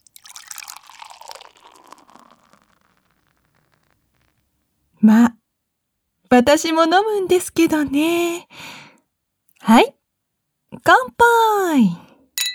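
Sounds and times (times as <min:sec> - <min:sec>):
beer being poured into a glass: 0:00.0 - 0:03.4
speech: 0:05.0 - 0:05.4, 0:06.4 - 0:08.8, 0:09.7 - 0:10.0, 0:10.8 - 0:12.0.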